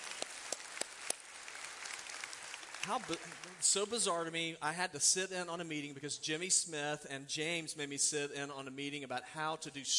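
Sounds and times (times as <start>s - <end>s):
audience clapping: 0.0s - 4.1s
speech: 2.8s - 9.9s.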